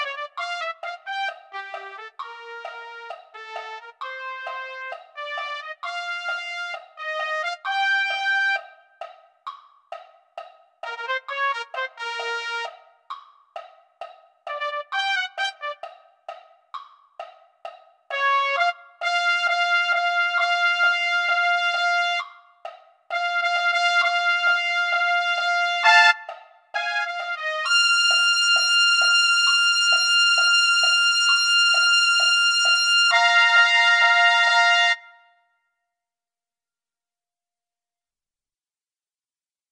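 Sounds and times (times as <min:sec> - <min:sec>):
trumpet: 0:00.0 - 0:08.6, 0:10.8 - 0:12.8, 0:14.5 - 0:15.9, 0:18.1 - 0:22.4, 0:23.1 - 0:35.4.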